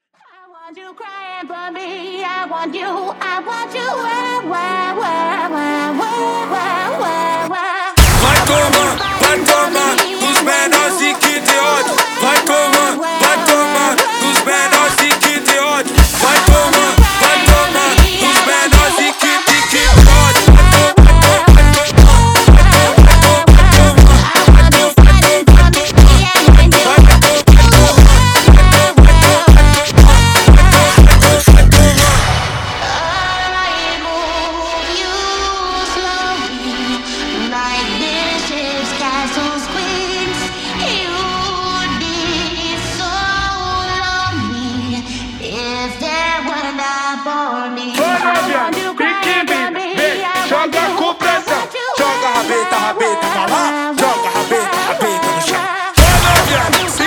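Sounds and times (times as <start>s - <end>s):
wah-wah funk: 8.0s - 32.2s, 48.0s - 57.0s.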